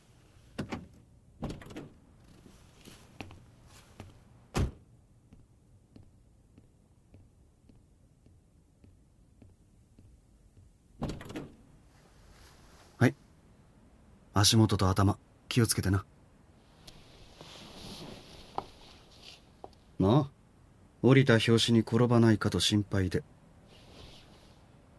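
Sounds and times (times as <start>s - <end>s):
car door being unlocked and opened: 4.5s - 4.8s
speech: 13.0s - 13.2s, 14.4s - 16.2s, 21.1s - 23.4s.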